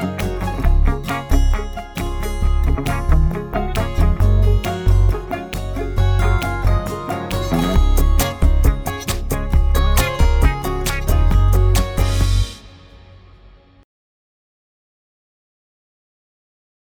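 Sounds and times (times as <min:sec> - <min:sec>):
electro pop music: 0:00.0 - 0:13.1.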